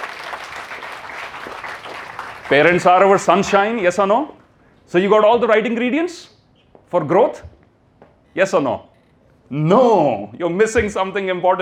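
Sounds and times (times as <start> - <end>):
audience round of applause: 0.0 - 3.1
speech: 2.5 - 6.3, 6.9 - 7.5, 8.4 - 8.9, 9.5 - 11.6.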